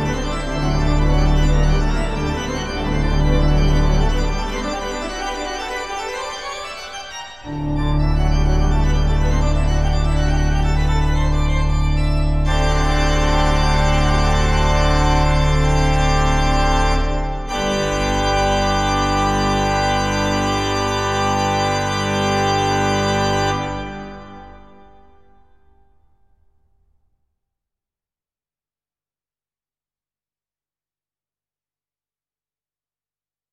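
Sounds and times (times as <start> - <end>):
organ fantasia in G major: 0.0 - 24.8.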